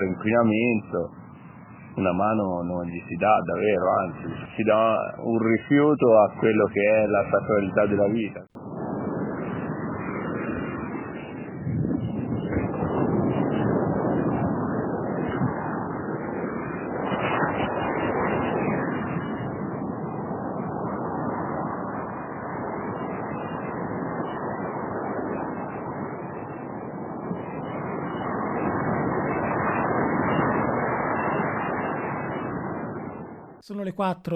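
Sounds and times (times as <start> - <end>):
speech: 0.0 - 1.2, 2.0 - 8.7, 34.0 - 34.3
sea surf on a beach at night: 8.6 - 33.3.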